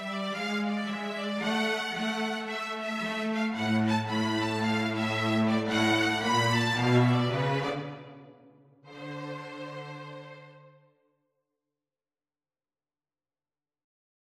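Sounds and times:
violin and cello jazz duet: 0.0s - 7.9s.

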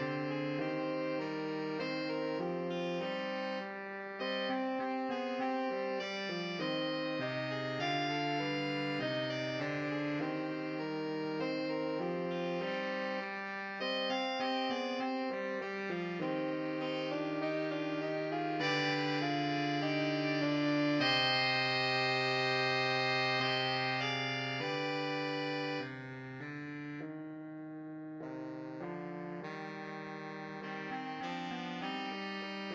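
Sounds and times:
saxophone quartet: 0.0s - 27.1s, 28.2s - 32.7s.

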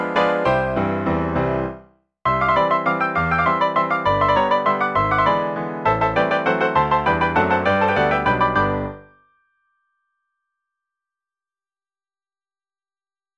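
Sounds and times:
piano played by six hands: 0.0s - 9.1s.

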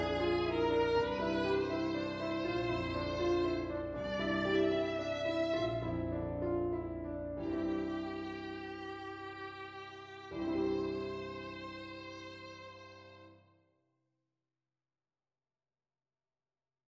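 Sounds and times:
violin: 0.0s - 13.4s.

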